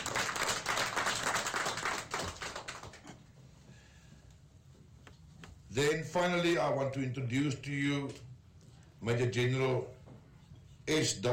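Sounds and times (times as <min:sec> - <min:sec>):
crowd clapping: 0:00.0 - 0:03.2
speech: 0:05.8 - 0:08.3, 0:09.0 - 0:10.0, 0:10.9 - 0:11.3.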